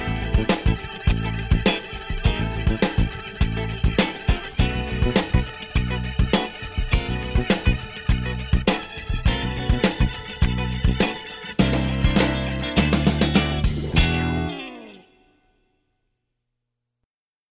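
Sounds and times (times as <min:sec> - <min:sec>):
drums: 0:00.0 - 0:14.5.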